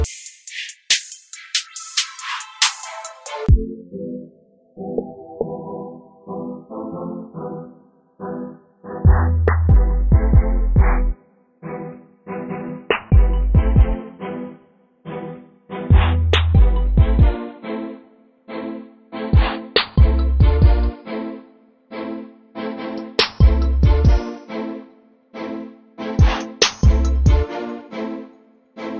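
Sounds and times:
trap beat: 0:00.0 - 0:03.7, 0:09.1 - 0:11.2, 0:12.9 - 0:14.0, 0:15.9 - 0:17.4, 0:19.4 - 0:20.9, 0:23.2 - 0:24.3, 0:26.2 - 0:27.5.

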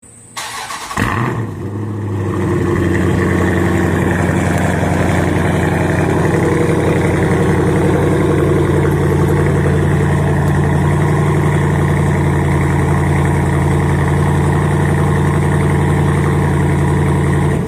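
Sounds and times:
Jeep SRT8 engine: 0:00.1 - 0:17.6.

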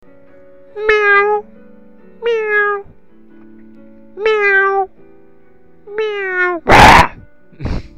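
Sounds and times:
cat meowing: 0:00.8 - 0:01.5, 0:02.2 - 0:03.0, 0:04.2 - 0:04.9, 0:05.9 - 0:07.2.

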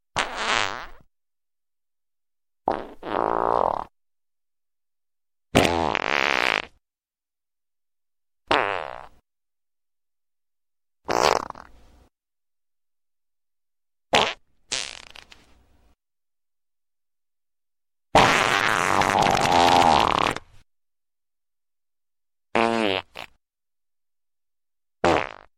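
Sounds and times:
farts: 0:00.2 - 0:01.1, 0:02.7 - 0:03.9, 0:05.5 - 0:06.8, 0:08.5 - 0:09.2, 0:11.0 - 0:11.7, 0:14.1 - 0:15.4, 0:18.2 - 0:20.6, 0:22.5 - 0:23.4, 0:25.0 - 0:25.5.

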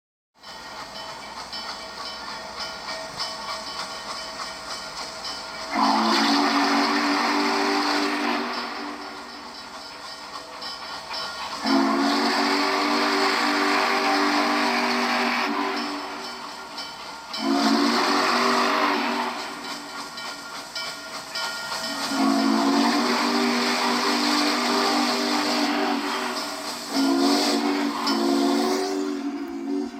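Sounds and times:
train whistle: 0:05.6 - 0:09.6, 0:11.5 - 0:16.6, 0:17.3 - 0:20.1, 0:21.8 - 0:29.9.

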